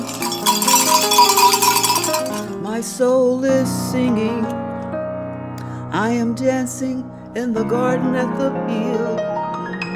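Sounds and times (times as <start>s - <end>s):
bells ringing: 0.0s - 2.6s
speech: 3.0s - 4.6s, 6.0s - 9.3s.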